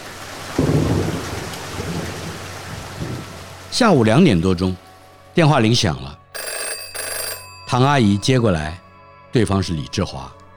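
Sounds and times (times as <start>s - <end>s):
heavy rain: 0.0s - 4.1s
low thunder rumble: 0.6s - 3.4s
speech: 3.7s - 4.8s, 5.4s - 6.2s, 7.7s - 10.4s.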